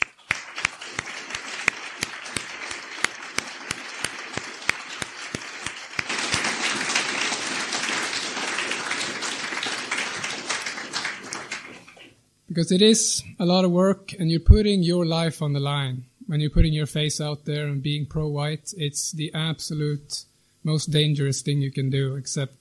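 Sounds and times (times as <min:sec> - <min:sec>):
audience applause: 0:00.0 - 0:12.1
speech: 0:12.6 - 0:22.6.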